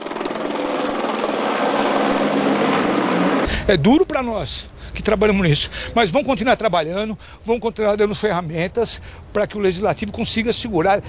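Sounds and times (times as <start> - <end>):
Polícia Civil police helicopter flying overhead: 0.0 - 3.8
speech: 3.7 - 11.0.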